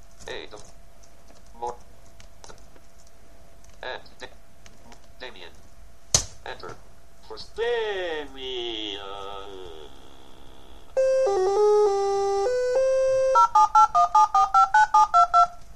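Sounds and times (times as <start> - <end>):
speech: 0.4 - 0.8
telephone keypad dialing tones: 11.0 - 15.6.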